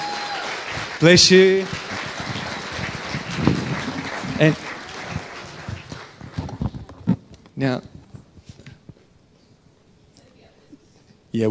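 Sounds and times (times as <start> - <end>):
audience applause: 0.0 - 7.2
speech: 1.0 - 1.8, 4.4 - 4.6, 7.6 - 7.9.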